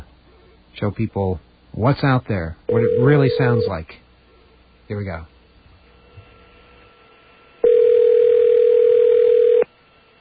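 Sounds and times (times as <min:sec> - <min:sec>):
speech: 0:00.8 - 0:04.0, 0:04.9 - 0:05.3
phone ringing on a call: 0:02.7 - 0:03.8, 0:07.6 - 0:09.7.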